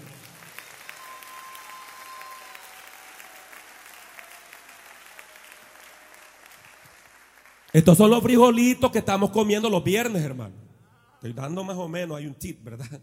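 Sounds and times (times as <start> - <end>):
loud audience applause: 0.0 - 8.1
speech: 7.7 - 10.6, 11.2 - 13.0.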